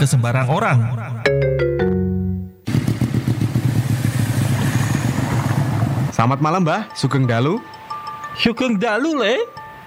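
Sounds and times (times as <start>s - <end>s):
speech: 0.0s - 1.4s, 6.2s - 7.8s, 8.4s - 9.6s
new motorcycle ridden fast with engine roaring: 2.6s - 6.1s.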